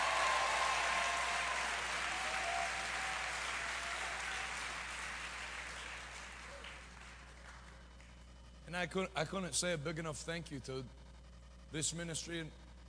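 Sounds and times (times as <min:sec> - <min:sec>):
sustained applause from a large audience: 0:00.0 - 0:07.7
speech: 0:08.7 - 0:11.0, 0:11.7 - 0:12.6.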